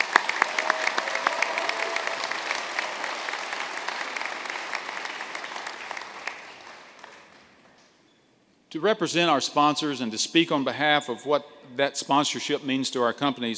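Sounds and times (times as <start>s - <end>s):
audience clapping for sponsors: 0.0s - 7.9s
speech: 8.7s - 13.5s.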